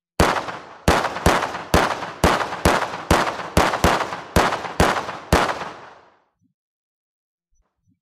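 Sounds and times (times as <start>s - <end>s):
gunfire: 0.2s - 6.2s.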